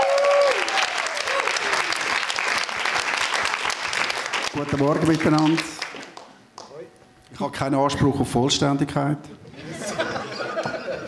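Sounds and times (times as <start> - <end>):
audience applause: 0.0 - 6.4
speech: 4.6 - 5.8, 7.4 - 9.4
laughter: 9.4 - 11.0.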